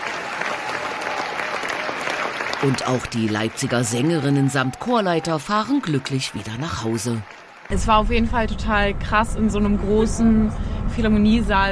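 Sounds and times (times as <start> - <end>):
thunderous applause in a large philharmonic concert hall: 0.0 - 11.6
speech: 2.6 - 11.6.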